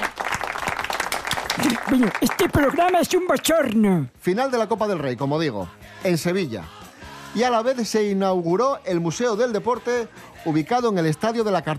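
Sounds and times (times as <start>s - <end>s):
applause: 0.0s - 3.2s
speech: 1.6s - 11.7s.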